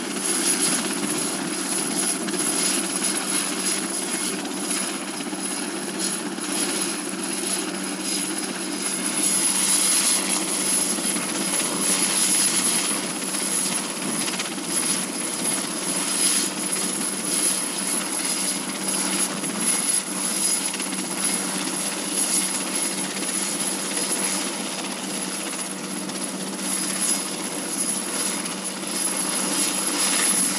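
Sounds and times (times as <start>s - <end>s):
helicopter approaching for landing: 0.0s - 30.5s.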